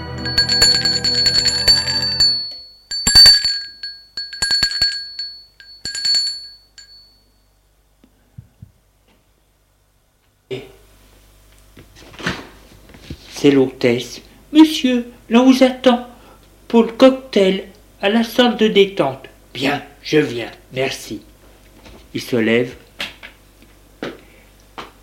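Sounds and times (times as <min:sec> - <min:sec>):
doorbell ringing: 0:00.0 - 0:07.4
speech: 0:13.4 - 0:16.1, 0:16.7 - 0:21.3, 0:22.1 - 0:22.8.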